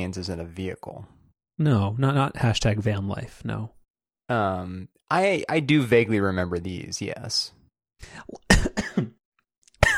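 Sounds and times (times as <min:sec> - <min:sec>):
speech: 0:00.0 - 0:09.1
person coughing after a sip went down wrong: 0:08.5 - 0:09.2, 0:09.8 - 0:09.9.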